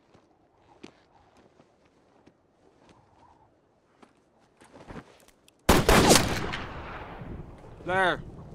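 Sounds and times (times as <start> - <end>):
gunshots from men shooting at cornbread on the prairie: 5.7 - 7.3.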